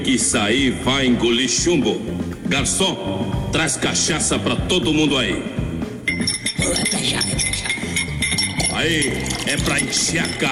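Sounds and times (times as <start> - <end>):
speech: 0.0 - 5.6, 6.2 - 7.7, 8.8 - 10.5
steady saloon din: 5.8 - 10.5
glasses clinking in a saloon: 6.0 - 10.5.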